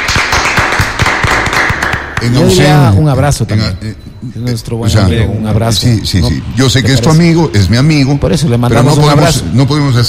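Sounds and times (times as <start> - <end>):
applause for a person: 0.0 - 2.6
speech: 2.2 - 10.0.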